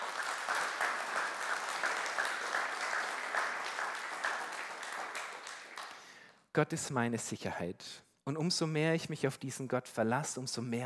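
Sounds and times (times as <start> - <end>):
audience applause: 0.0 - 6.2
speech: 6.6 - 10.8.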